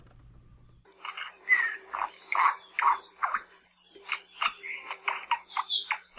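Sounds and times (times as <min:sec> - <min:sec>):
endangered Hawaiian honeycreeper calling: 0:00.9 - 0:06.1.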